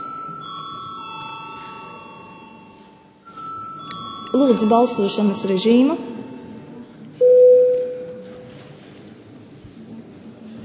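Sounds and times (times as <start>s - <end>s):
parliament chamber bell rung before vote: 0.0s - 6.7s
speech: 4.3s - 6.2s.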